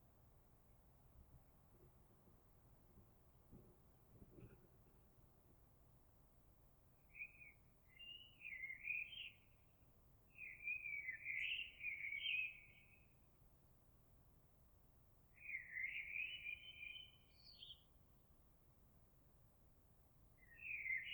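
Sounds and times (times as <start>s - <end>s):
Eurasian blackbird song: 7.1s - 9.5s, 10.3s - 13.1s, 15.4s - 17.8s, 20.4s - 21.1s.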